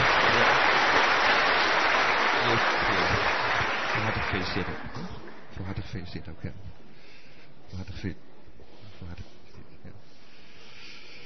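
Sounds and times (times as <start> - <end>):
applause from a gathering honouring parents: 0.0 - 5.5
speech: 4.4 - 6.8, 7.7 - 8.3, 9.0 - 10.0.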